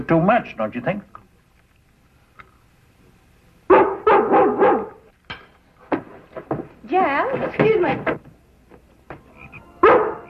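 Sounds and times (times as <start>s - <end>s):
speech: 0.0s - 1.2s, 6.9s - 8.2s
dog barking: 3.7s - 5.1s, 9.8s - 10.2s.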